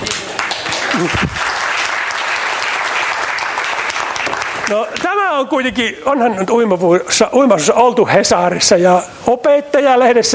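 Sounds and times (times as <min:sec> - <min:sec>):
audience applause: 0:00.0 - 0:05.1
speech: 0:01.0 - 0:01.5, 0:04.7 - 0:10.3.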